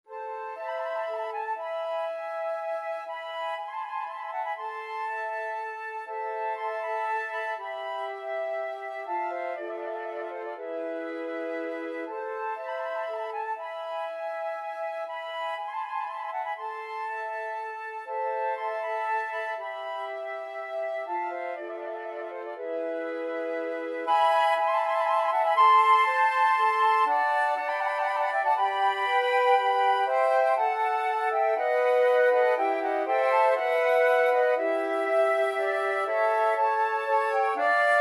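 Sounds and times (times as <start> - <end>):
flute quartet: 0.0 - 38.0.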